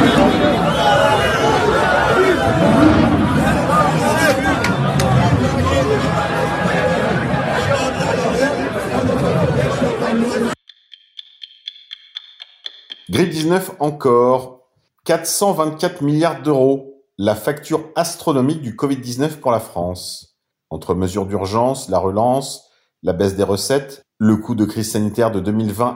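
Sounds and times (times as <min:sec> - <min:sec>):
protest crowd chanting: 0:00.0 - 0:10.6
speech: 0:13.5 - 0:25.9.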